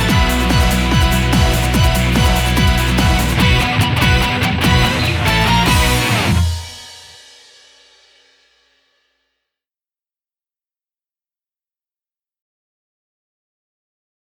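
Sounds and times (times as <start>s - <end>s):
instrumental music: 0.0s - 7.6s.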